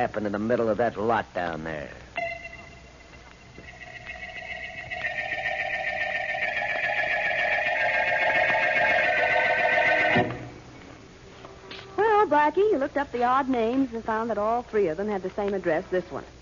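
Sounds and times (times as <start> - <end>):
speech: 0.0 - 2.1, 12.5 - 16.3
electric doorbell ringing: 2.2 - 10.5.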